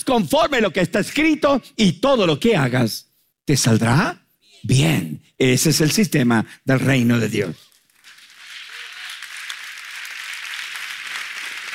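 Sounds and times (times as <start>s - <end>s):
speech: 0.0s - 7.7s
audience applause: 7.8s - 11.7s.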